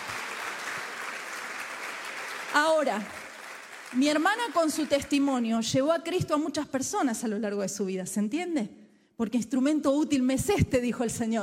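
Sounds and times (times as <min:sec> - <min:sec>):
audience applause: 0:00.0 - 0:05.2
speech: 0:02.5 - 0:03.2, 0:03.9 - 0:11.4.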